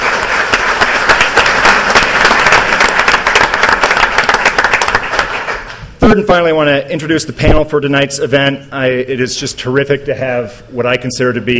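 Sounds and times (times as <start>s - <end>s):
audience applause: 0.0s - 5.8s
speech: 6.1s - 11.5s.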